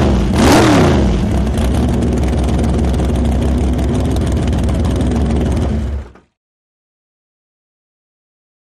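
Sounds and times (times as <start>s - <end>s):
drag boat engine idling and revving: 0.0s - 6.2s.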